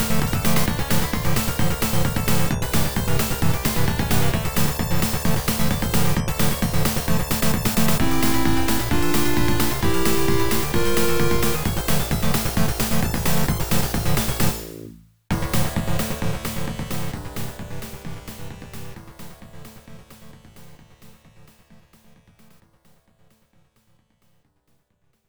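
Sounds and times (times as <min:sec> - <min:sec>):
battle heavy metal music: 0:00.0 - 0:17.1.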